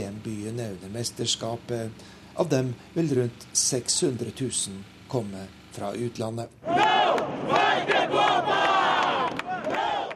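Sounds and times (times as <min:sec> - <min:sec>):
speech: 0:00.6 - 0:06.9
protesters chanting at a demonstration in Rio: 0:06.6 - 0:10.1.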